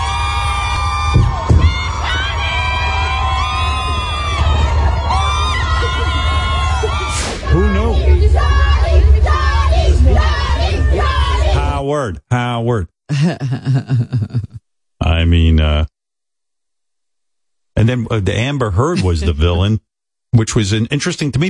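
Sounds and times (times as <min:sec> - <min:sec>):
large crowd of women cheering and screaming: 0:00.0 - 0:11.7
laughter: 0:04.6 - 0:11.7, 0:13.1 - 0:14.6, 0:18.8 - 0:19.6
speech: 0:11.9 - 0:15.9, 0:17.8 - 0:21.4.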